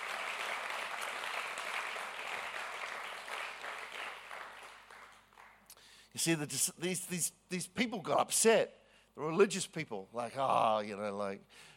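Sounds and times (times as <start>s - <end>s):
audience clapping: 0.0s - 5.8s
speech: 6.1s - 11.7s.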